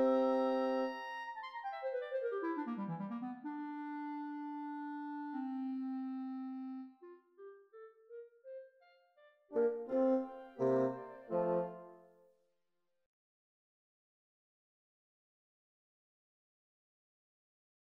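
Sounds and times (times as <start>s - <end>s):
bassoon: 0.0s - 1.6s, 2.6s - 8.2s, 9.5s - 12.0s.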